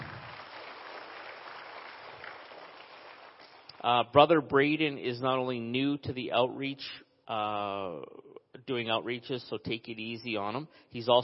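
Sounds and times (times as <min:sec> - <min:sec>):
audience applause at an outreach gathering: 0:00.0 - 0:03.7
speech: 0:03.8 - 0:11.2.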